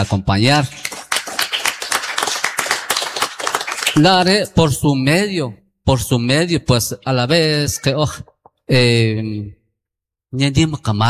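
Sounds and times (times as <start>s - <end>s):
speech: 0.0s - 0.9s, 4.0s - 9.6s, 10.3s - 11.0s
applause: 0.0s - 4.3s.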